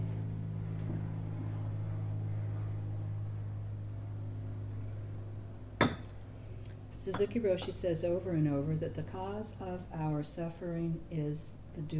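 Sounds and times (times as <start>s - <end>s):
airplane droning overhead: 0.0s - 11.9s
clink of a glass or cup: 5.8s - 6.1s
speech: 7.0s - 11.9s.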